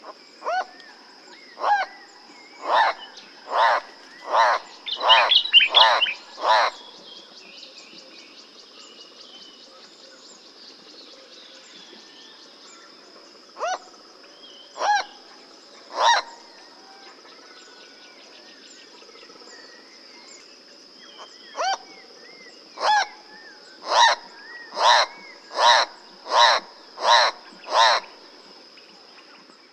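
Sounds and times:
Schalow's turaco calling: 1.6 - 7.1, 14.7 - 17.0, 22.8 - 28.4.

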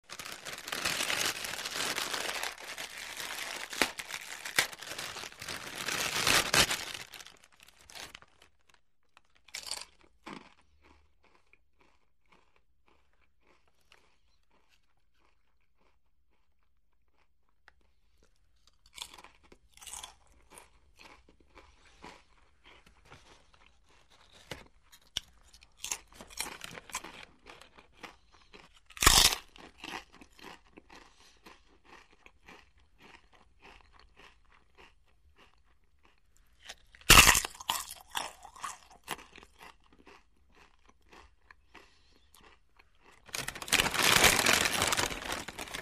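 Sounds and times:
crunching chips: 0.0 - 45.8
chip bag opening: 0.1 - 8.4, 43.2 - 45.8
chewing: 9.6 - 45.8.

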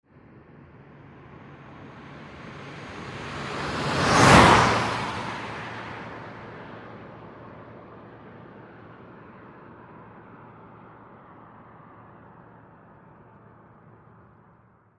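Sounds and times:
car passing by fast: 0.8 - 11.9.

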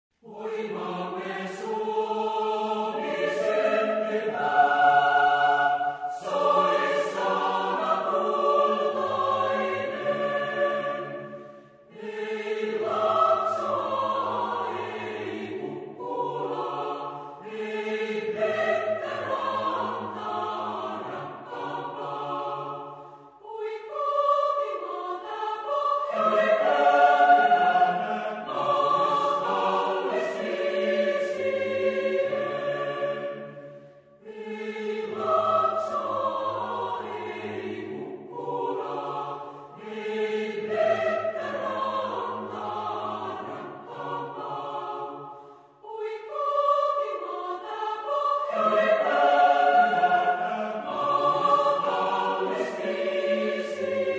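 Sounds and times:
national anthem: 0.2 - 54.1.

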